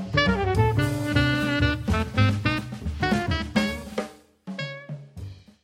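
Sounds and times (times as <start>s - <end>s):
triad chords: 0.1s - 4.0s.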